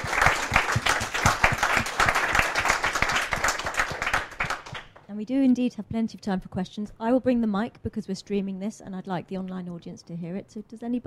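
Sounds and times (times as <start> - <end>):
audience applause after a Friday lunchtime lecture at CERN about the arts: 0.0 - 4.9
speech: 5.2 - 11.0.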